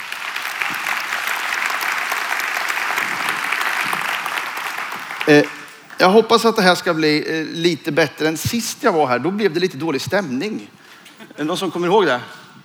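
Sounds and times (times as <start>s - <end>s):
audience applause: 0.0s - 6.2s
speech: 5.3s - 10.8s, 11.4s - 12.4s.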